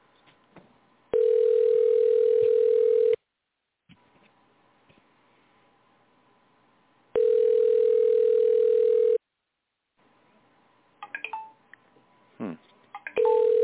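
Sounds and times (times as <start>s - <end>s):
telephone ringback tone: 1.1s - 3.2s, 7.2s - 9.2s, 13.2s - 13.6s.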